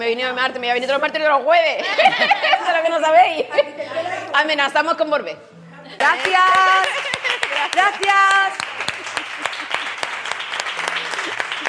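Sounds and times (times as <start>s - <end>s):
speech: 0.0s - 8.6s
laughter: 1.8s - 4.2s, 6.7s - 8.1s, 8.8s - 10.2s, 10.8s - 11.6s
crowd applause: 6.1s - 11.6s.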